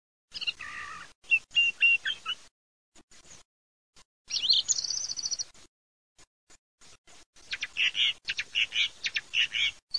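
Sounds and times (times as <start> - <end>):
thrush singing: 0.3 - 2.4, 4.3 - 5.5, 7.4 - 9.9.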